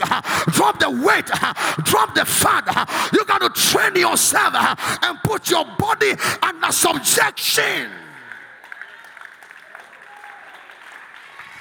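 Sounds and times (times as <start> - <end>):
speech: 0.5 - 8.0
audience clapping: 7.2 - 11.5.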